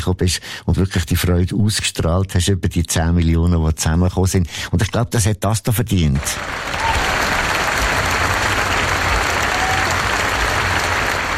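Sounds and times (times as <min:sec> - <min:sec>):
speech: 0:00.0 - 0:07.0
audience applause: 0:06.2 - 0:11.3.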